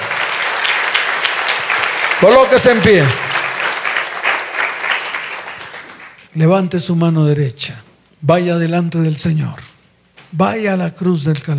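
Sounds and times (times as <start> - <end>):
audience applause: 0.0 - 6.2
speech: 2.2 - 3.2, 6.4 - 9.7, 10.3 - 11.5.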